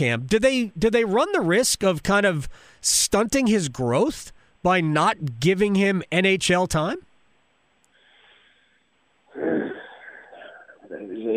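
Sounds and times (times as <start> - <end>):
speech: 0.0 - 7.1
person groaning while pondering a question: 9.4 - 10.8.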